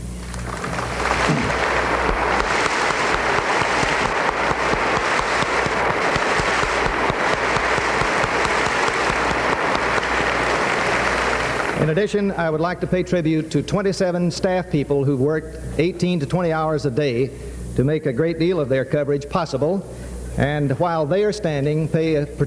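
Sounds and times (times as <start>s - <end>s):
round of applause: 0.2s - 11.8s
speech: 11.9s - 22.4s.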